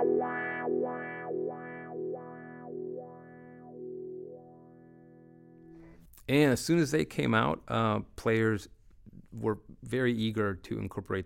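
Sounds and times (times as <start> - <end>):
distorted guitar tone through a wah-wah pedal: 0.0 - 6.0
speech: 6.3 - 11.2.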